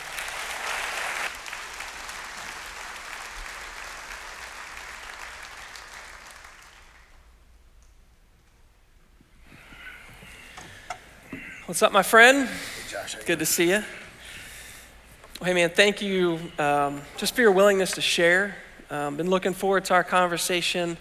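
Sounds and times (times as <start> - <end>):
audience applause welcoming a guest onto a stage: 0.0 - 7.3
speech: 11.7 - 14.0, 15.4 - 20.9.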